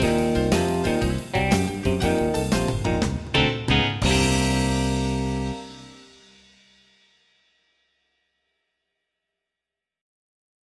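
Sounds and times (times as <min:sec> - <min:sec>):
blues music: 0:00.0 - 0:06.4.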